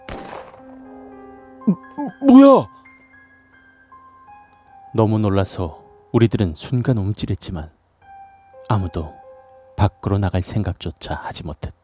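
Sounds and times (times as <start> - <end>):
gunshot: 0.0 - 0.8
speech: 1.6 - 2.8, 4.9 - 7.8, 8.6 - 9.2, 9.8 - 11.8.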